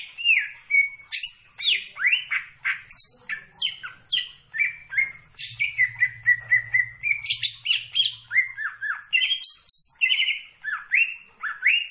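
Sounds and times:
leafbird singing varied whistles and chattering notes: 0.0 - 11.9.

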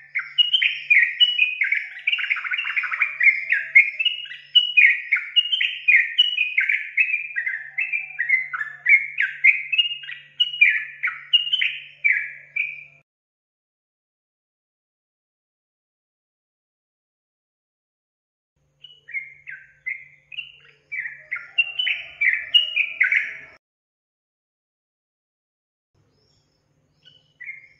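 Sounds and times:
Yellow-vented Bulbul song: 0.0 - 13.0, 18.7 - 23.6, 26.0 - 27.7.

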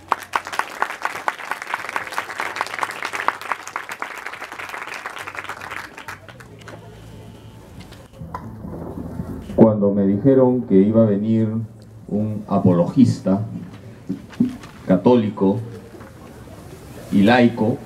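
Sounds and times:
audience applause welcoming speaker: 0.0 - 7.1
speech: 9.7 - 13.6, 15.0 - 15.7, 17.1 - 17.8.

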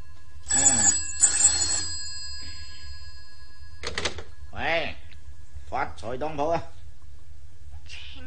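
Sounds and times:
old-fashioned telephone bell ringing in a pawnshop: 0.0 - 4.2
speech: 6.1 - 6.8.

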